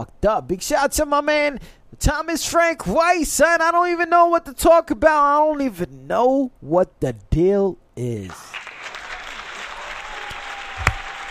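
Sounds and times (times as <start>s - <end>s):
speech: 0.0s - 8.6s
audience applause: 8.5s - 11.2s.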